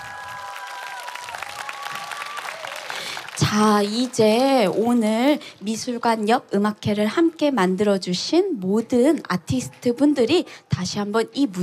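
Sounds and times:
audience applause: 0.0s - 4.4s
speech: 3.5s - 11.6s.

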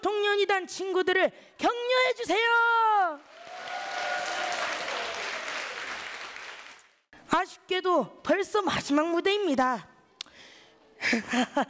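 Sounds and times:
speech: 0.0s - 3.4s, 7.4s - 9.9s, 11.1s - 11.6s
audience applause: 3.2s - 7.0s.

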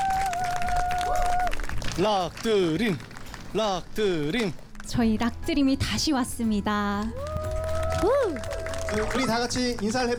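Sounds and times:
audience applause: 0.0s - 4.2s, 7.2s - 10.1s
speech: 2.0s - 7.2s, 8.0s - 10.1s.

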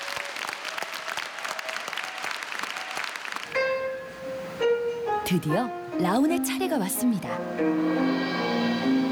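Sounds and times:
audience applause: 0.0s - 4.6s
speech: 5.3s - 9.0s.

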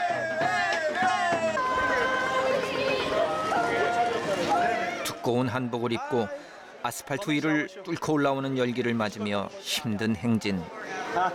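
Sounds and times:
street crowd cheering at a parade: 0.0s - 5.3s
speech: 5.3s - 11.3s.

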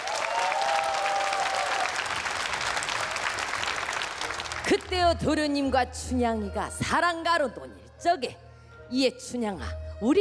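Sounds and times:
audience applauding: 0.0s - 4.9s
faint whoop or whistle: 0.1s - 1.9s
speech: 4.7s - 10.1s.

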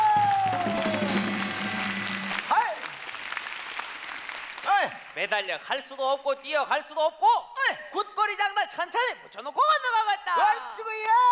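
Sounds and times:
audience applause: 0.0s - 5.3s
sustained musical tones: 0.6s - 2.5s
speech: 5.3s - 11.3s.

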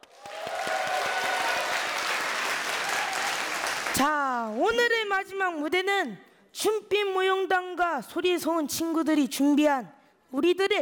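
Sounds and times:
audience applause: 0.0s - 4.0s
speech: 4.0s - 10.7s.

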